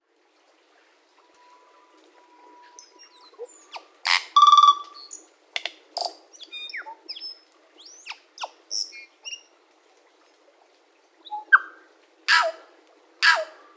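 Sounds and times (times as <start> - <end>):
tui song: 1.2 - 5.3, 6.0 - 9.6.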